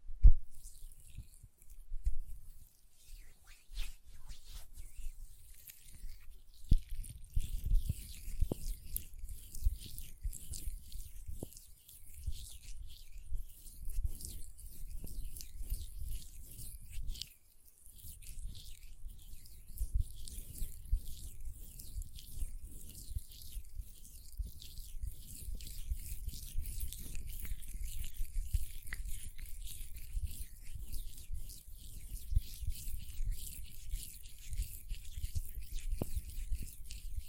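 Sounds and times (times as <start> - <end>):
lotion rubbed between hands: 0.4 - 37.2.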